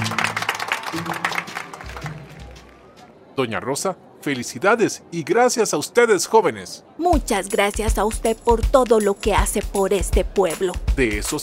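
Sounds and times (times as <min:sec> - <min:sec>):
applause: 0:00.0 - 0:03.1
speech: 0:00.9 - 0:01.4, 0:03.4 - 0:11.4.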